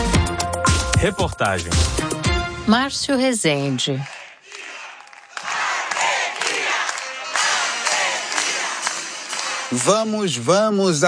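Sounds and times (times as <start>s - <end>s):
speech: 1.0s - 4.2s, 9.7s - 11.0s
military band playing an Argentine football fan chant: 4.0s - 9.8s.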